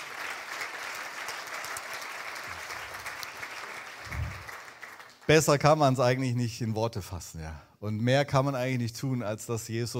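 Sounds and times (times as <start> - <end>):
audience applause: 0.0 - 5.5
speech: 5.3 - 9.9.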